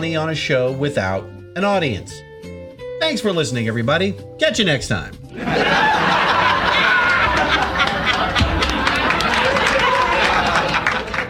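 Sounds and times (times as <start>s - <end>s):
speech: 0.0s - 6.2s
canned laughter from a television laugh track: 5.4s - 11.2s.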